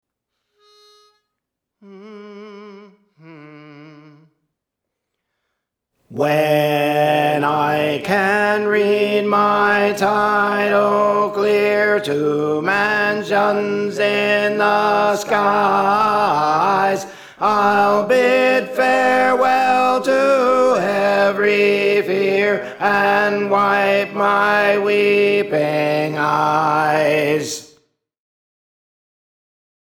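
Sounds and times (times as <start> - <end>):
tenor singing: 6.1 - 27.7.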